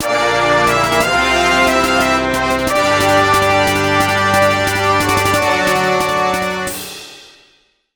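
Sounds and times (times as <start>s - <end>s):
boss fanfare: 0.0s - 7.1s.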